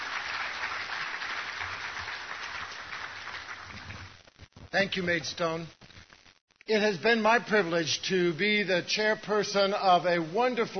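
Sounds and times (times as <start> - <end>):
audience applause: 0.0 - 4.2
speech: 4.7 - 5.8, 6.7 - 10.7.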